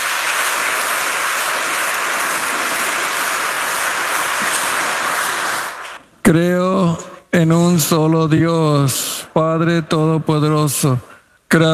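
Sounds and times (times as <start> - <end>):
audience applause: 0.0 - 6.0
speech: 6.3 - 11.7.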